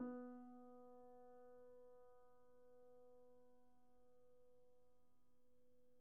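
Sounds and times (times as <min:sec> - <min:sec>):
Steinway piano played pianissimo: 0:00.0 - 0:01.6.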